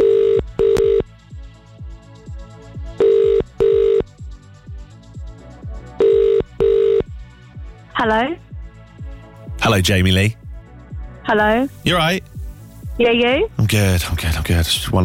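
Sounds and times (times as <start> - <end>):
telephone ringing: 0.0 - 1.0, 3.0 - 4.0, 6.0 - 7.0
speech: 8.0 - 8.5, 9.7 - 10.4, 11.3 - 12.3, 13.0 - 15.0.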